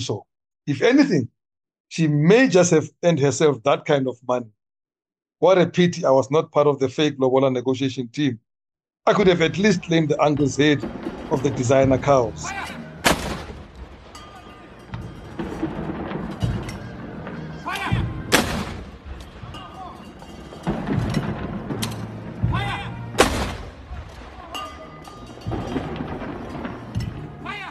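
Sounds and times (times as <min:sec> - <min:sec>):
speech: 0:00.0 - 0:04.6, 0:05.4 - 0:08.4, 0:09.0 - 0:12.7
21-gun salute cannon fire: 0:12.2 - 0:27.6.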